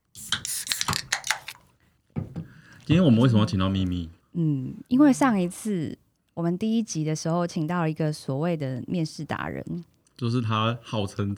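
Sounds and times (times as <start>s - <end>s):
drink can being opened: 0.2s - 1.7s
speech: 2.9s - 11.3s.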